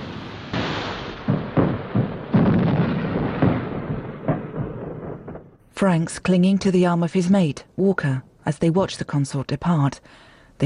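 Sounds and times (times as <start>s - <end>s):
heavy gunfire at a boat retreating down a river: 0.5s - 5.6s
speech: 5.8s - 10.6s.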